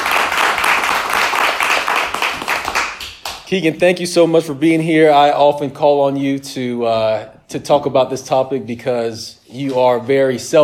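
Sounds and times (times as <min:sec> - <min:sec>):
round of applause: 0:00.0 - 0:03.5
speech: 0:03.5 - 0:10.6.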